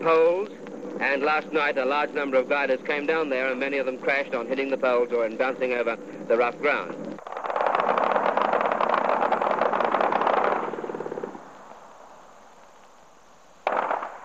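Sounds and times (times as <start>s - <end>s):
speech: 0.0s - 7.0s
MG-34 light machine gun fire: 7.2s - 11.5s, 13.6s - 14.2s.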